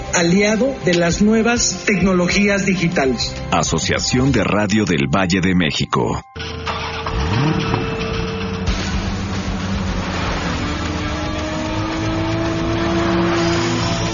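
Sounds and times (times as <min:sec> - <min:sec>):
speech: 0:00.1 - 0:06.4, 0:07.3 - 0:07.7
sports car engine revving: 0:06.4 - 0:14.1.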